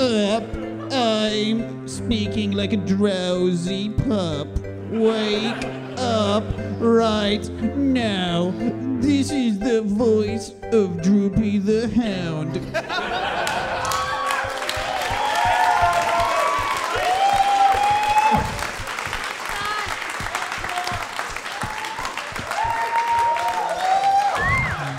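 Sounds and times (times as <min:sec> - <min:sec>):
speech: 0:00.4 - 0:13.6
laughter: 0:04.8 - 0:06.8, 0:12.6 - 0:15.4
audience applause: 0:13.0 - 0:24.9.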